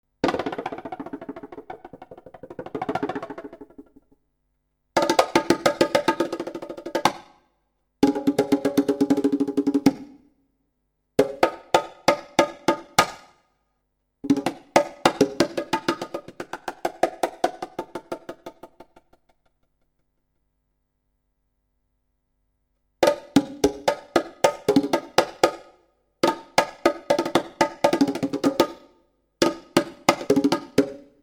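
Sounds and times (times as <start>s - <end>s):
bongo drums: 0.2s - 4.2s, 5.0s - 7.4s, 8.0s - 10.2s, 11.2s - 13.4s, 14.2s - 19.5s, 23.0s - 31.2s.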